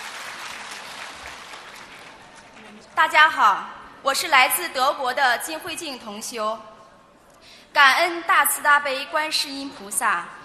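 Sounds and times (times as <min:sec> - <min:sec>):
gathering at a Buddhist dharma event clapping: 0:00.0 - 0:02.9
speech: 0:02.7 - 0:06.7, 0:07.4 - 0:10.4.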